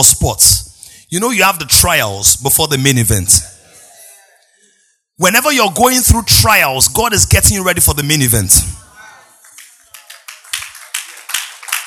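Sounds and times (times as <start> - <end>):
speech: 0.0 - 3.6, 5.2 - 8.8
audience clapping: 9.1 - 11.8.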